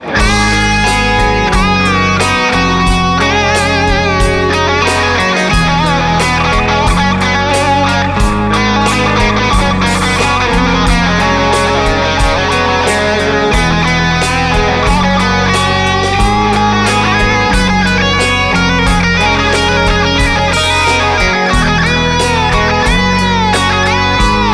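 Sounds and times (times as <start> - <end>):
guitar solo: 0.0 - 24.5.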